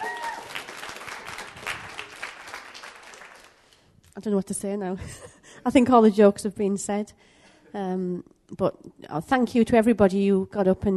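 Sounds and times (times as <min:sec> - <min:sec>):
audience applause: 0:00.0 - 0:03.7
speech: 0:04.2 - 0:10.9.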